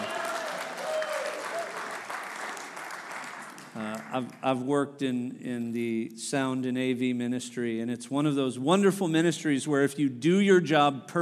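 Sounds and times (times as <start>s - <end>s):
audience applause: 0.0s - 4.4s
speech: 4.1s - 11.2s.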